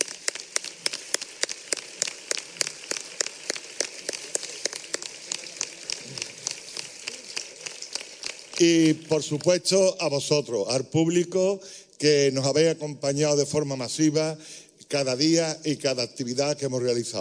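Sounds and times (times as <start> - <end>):
audience applause: 0.0 - 9.6
speech: 8.6 - 17.1.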